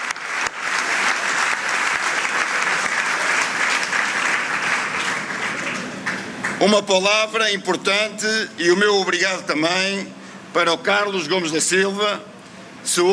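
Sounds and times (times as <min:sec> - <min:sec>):
strong applause at campaign headquarters: 0:00.0 - 0:07.2
speech: 0:06.6 - 0:13.1.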